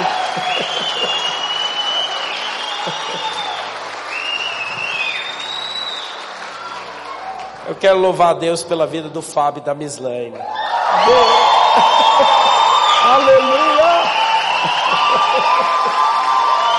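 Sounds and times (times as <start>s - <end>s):
laughter: 0.0s - 1.8s, 2.6s - 3.7s, 11.0s - 12.8s, 14.1s - 16.6s
high voices whooping: 0.0s - 6.0s, 10.4s - 16.7s
crowd applauding: 0.0s - 8.2s, 10.4s - 16.7s
speech: 7.8s - 12.5s, 13.1s - 16.1s.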